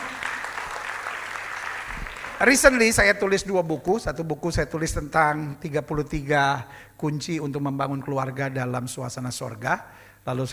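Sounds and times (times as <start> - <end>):
audience applauding: 0.0 - 3.2
speech: 2.4 - 10.5.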